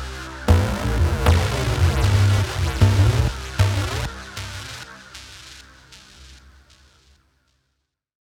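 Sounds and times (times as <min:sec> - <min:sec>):
modular synth solo: 0:00.5 - 0:05.0.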